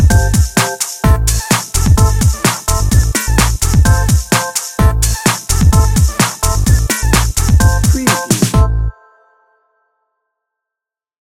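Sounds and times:
bouncy beats music bed: 0.0 - 8.9.

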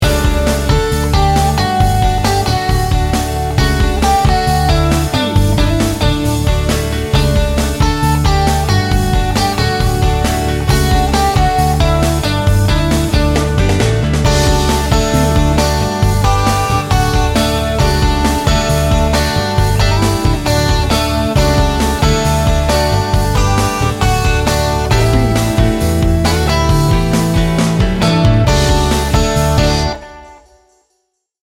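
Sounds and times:
Americana music: 0.0 - 30.5.

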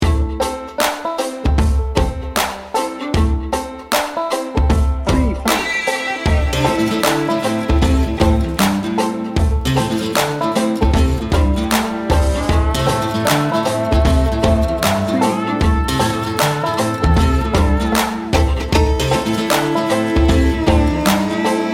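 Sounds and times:
redneck hip hop music: 0.0 - 21.7.

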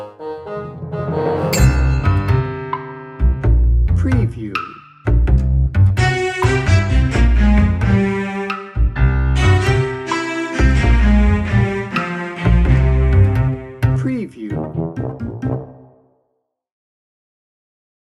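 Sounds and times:
bass percussion: 1.1 - 8.1, 8.8 - 10.0, 10.6 - 11.8, 12.5 - 15.7.

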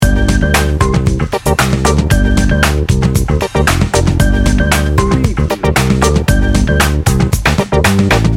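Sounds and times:
sleek and confident music loop: 0.0 - 8.3.

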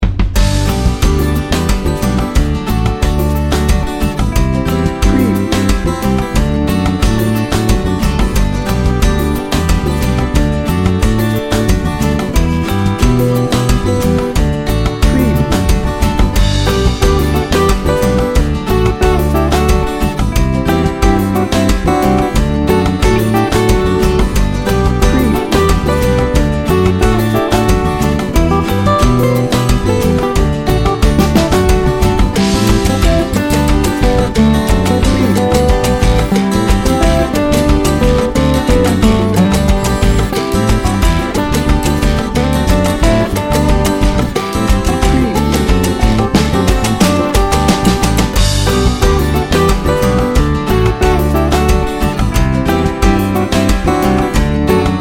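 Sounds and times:
tropical cumbia party music: 0.0 - 54.9.

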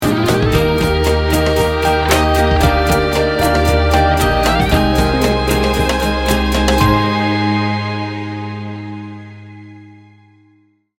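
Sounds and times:
motivating and positive music sting bumper: 0.0 - 9.8.

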